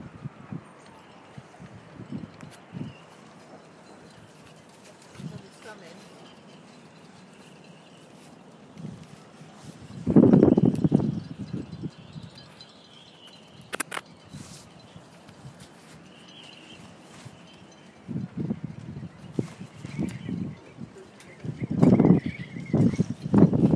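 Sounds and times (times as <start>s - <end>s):
boat rigging in the wind at Whitstable: 0.0s - 23.7s.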